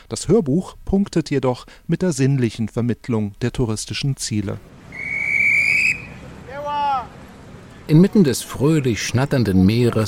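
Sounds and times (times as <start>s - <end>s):
speech: 0.1s - 4.8s, 7.9s - 10.0s
police officer's trill whistle directing traffic: 4.9s - 6.2s.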